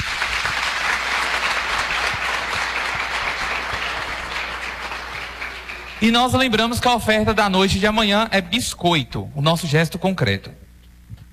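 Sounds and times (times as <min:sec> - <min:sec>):
audience applause: 0:00.0 - 0:06.9
speech: 0:06.0 - 0:10.6.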